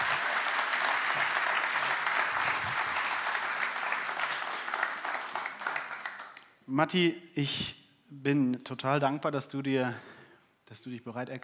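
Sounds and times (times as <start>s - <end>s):
audience applause: 0.0s - 6.4s
speech: 6.7s - 10.1s, 10.7s - 11.4s.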